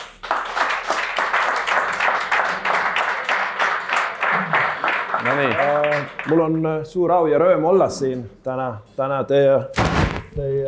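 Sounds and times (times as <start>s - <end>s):
crowd applauding: 0.0s - 6.6s
speech: 5.3s - 10.6s.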